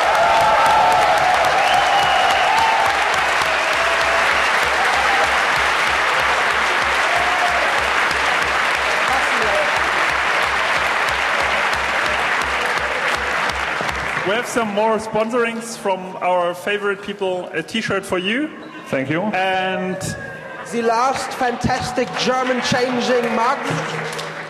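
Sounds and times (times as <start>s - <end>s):
audience applause: 0.0s - 15.1s, 20.7s - 24.4s
speech: 14.6s - 24.2s.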